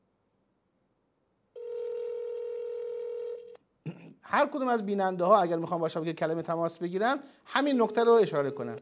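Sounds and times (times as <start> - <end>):
low-pitched telephone line tone during a live TV call-in: 1.6 - 3.6
speech: 4.3 - 8.8.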